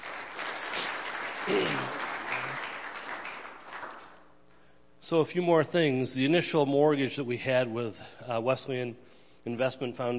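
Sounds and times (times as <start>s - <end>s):
audience applause: 0.0s - 4.2s
speech: 1.5s - 2.0s, 5.1s - 10.1s.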